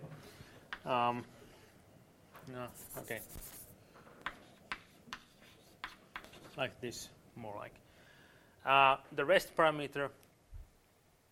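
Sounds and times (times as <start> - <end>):
speech: 0.8 - 1.4, 2.5 - 3.6, 6.6 - 7.8, 8.6 - 10.2
writing strokes: 2.7 - 6.7.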